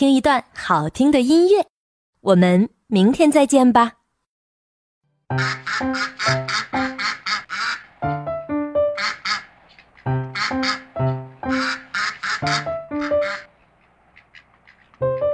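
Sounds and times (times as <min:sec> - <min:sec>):
speech: 0:00.0 - 0:04.0, 0:05.3 - 0:08.2
duck quacking: 0:05.3 - 0:08.3, 0:08.9 - 0:13.6, 0:14.2 - 0:15.3.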